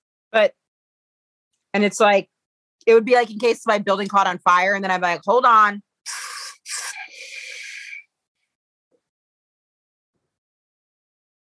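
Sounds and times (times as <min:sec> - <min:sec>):
speech: 0:00.3 - 0:00.6, 0:01.8 - 0:05.9
pressurized oxygen hissing from a can: 0:06.1 - 0:07.8
person inhaling from a can of oxygen: 0:06.1 - 0:08.0.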